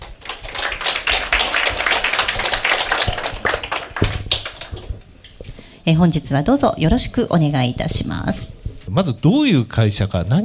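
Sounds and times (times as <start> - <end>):
audience applauding: 0.0 - 5.1
speech: 5.9 - 10.4.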